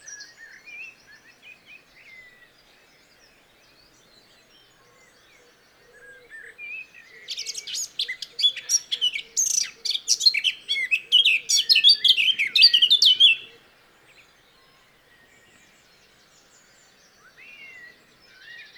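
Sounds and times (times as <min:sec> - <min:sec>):
Eurasian blackcap Sylvia atricapilla singing a scratchy whistled warble: 0:07.3 - 0:13.5.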